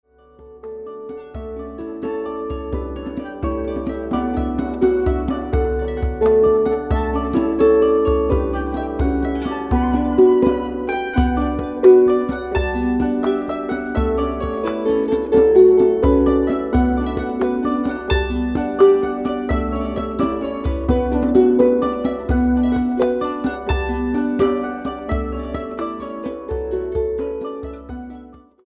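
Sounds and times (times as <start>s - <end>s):
harp tune: 0.1s - 28.6s.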